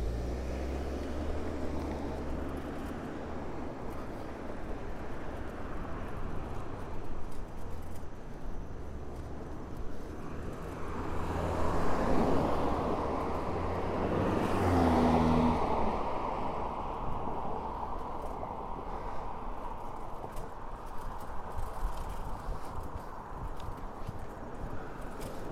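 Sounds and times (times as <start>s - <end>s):
vehicle passing: 0.0s - 4.0s, 10.4s - 25.5s
bike ride road noise from Orchard Beach: 0.0s - 25.5s
faint traffic: 0.0s - 25.5s.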